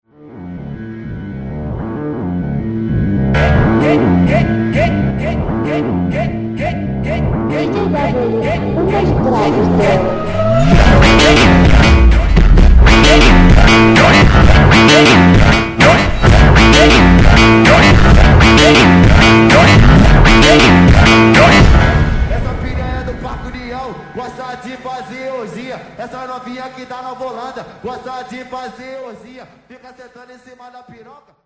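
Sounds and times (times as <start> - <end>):
distorted remix beat: 3.4 - 24.6.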